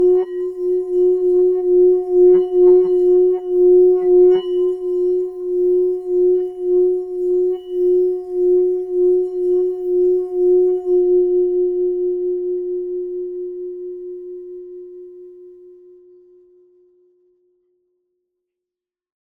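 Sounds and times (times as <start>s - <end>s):
large Tibetan singing bowl rubbed: 0.0s - 13.3s.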